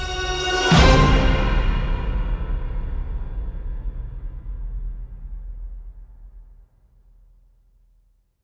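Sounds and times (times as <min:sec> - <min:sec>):
orchestral action music: 0:00.0 - 0:03.6.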